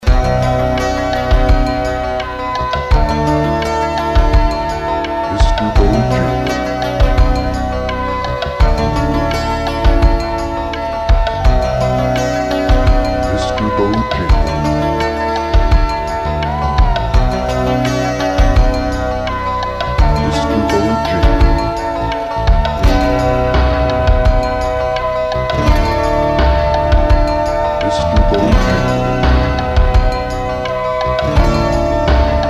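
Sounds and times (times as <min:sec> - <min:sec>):
telephone on-hold music: 0:00.0 - 0:32.4.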